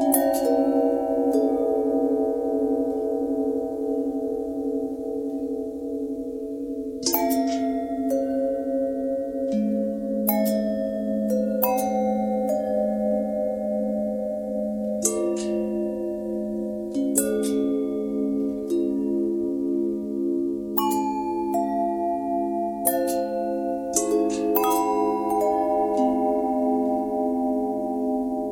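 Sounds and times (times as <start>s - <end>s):
long bell with bend and twist: 0.0s - 28.4s.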